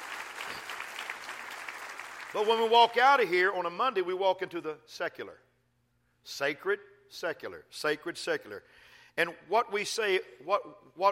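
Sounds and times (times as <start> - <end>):
audience clapping hands: 0.0 - 3.1
speech: 2.3 - 5.5, 6.2 - 11.1.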